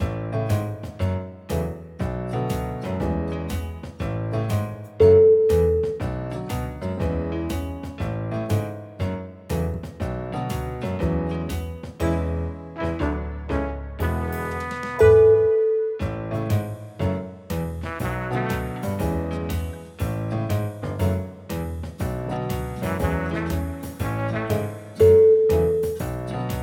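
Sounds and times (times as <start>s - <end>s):
catchy comedy jazz music: 0.0s - 26.6s.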